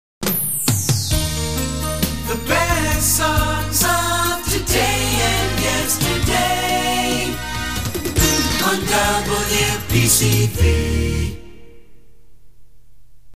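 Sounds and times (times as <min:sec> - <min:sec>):
jingle: 0:01.2 - 0:11.8.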